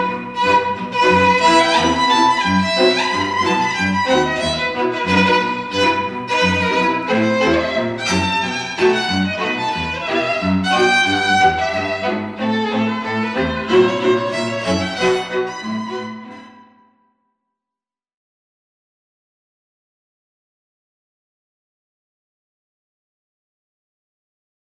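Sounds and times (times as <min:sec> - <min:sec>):
string quartet: 0:00.0 - 0:16.6.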